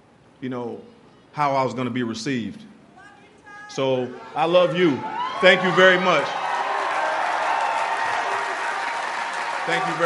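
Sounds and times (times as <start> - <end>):
speech: 0.4 - 2.7, 3.7 - 6.4, 9.7 - 10.0
audience applause: 5.1 - 10.0.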